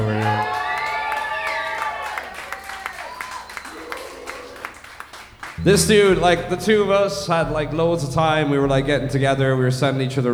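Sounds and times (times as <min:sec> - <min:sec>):
whoops and high-pitched cheers: 0:00.0 - 0:04.8
audience applauding: 0:00.0 - 0:06.2
speech: 0:05.6 - 0:10.3.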